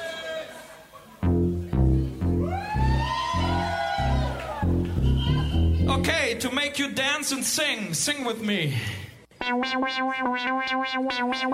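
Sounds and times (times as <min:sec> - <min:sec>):
gliding higher melodic line: 0:01.2 - 0:06.3
polka accompaniment with Wechsel alternating bass: 0:01.2 - 0:06.6, 0:09.4 - 0:11.5
speech: 0:06.3 - 0:11.5.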